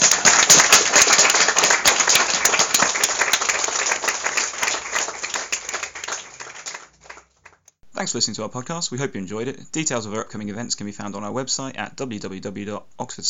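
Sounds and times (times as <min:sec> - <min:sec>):
audience round of applause: 0:00.0 - 0:07.7
speech: 0:08.0 - 0:13.2.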